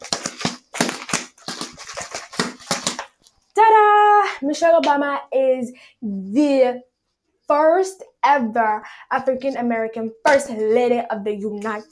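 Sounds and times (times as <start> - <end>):
sound made with a water bottle: 0.0 - 3.4
speech: 4.4 - 6.9, 7.5 - 11.9.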